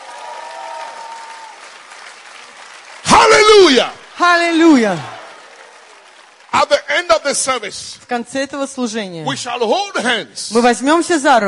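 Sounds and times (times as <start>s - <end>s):
audience clapping: 0.0s - 8.1s
speech: 3.7s - 5.1s, 6.6s - 11.4s.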